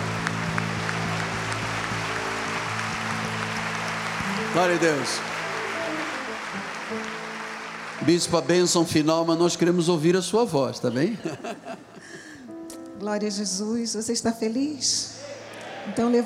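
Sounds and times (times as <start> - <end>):
audience clapping hands: 0.0 - 10.1
speech: 4.6 - 5.3, 8.0 - 11.9, 13.0 - 16.2
laughter: 10.8 - 12.4.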